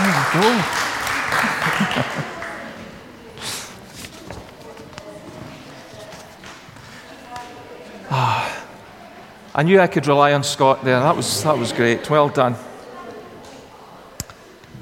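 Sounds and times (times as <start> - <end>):
audience applause: 0.0 - 3.8
laughter: 0.0 - 3.8, 11.0 - 12.4
crowd noise: 0.0 - 14.8
speech: 0.3 - 0.9, 9.6 - 12.7.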